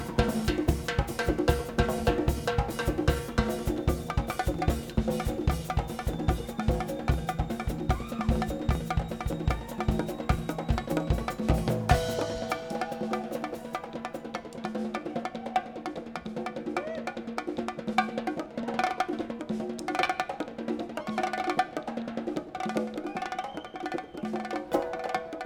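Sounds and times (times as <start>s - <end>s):
drums: 0.0s - 25.4s.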